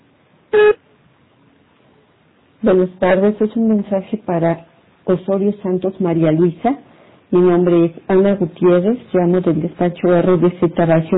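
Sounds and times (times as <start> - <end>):
voicemail beep: 0.6 - 0.8
speech: 2.6 - 11.1.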